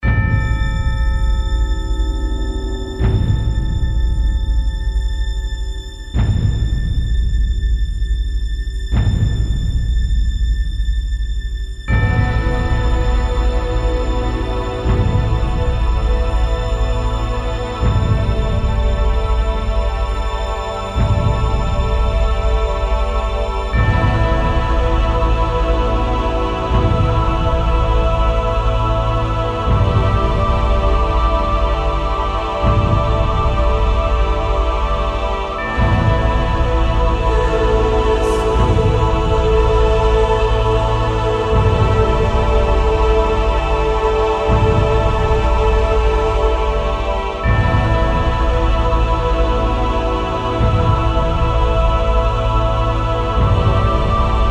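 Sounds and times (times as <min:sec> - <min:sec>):
floating suspense music: 0:00.0 - 0:54.4.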